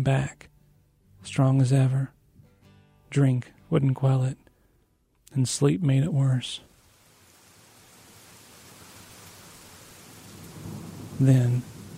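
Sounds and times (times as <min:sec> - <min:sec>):
speech: 0:00.0 - 0:00.5, 0:01.2 - 0:02.2, 0:03.1 - 0:04.4, 0:05.3 - 0:06.7, 0:11.2 - 0:11.7
heavy rain: 0:06.5 - 0:11.9
thunder: 0:10.2 - 0:11.9.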